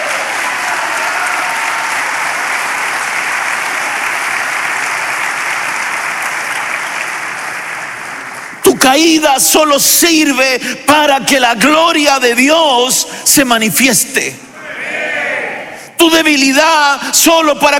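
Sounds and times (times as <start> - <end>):
audience clapping: 0.0 - 9.2
speech: 8.9 - 14.5, 16.0 - 17.7.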